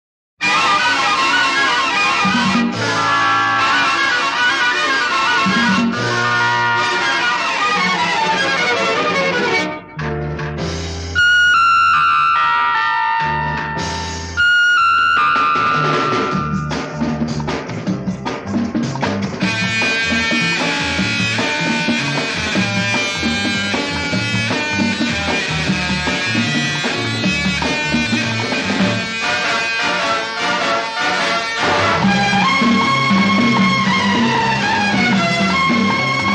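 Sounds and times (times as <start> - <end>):
title theme music: 0.4 - 36.3.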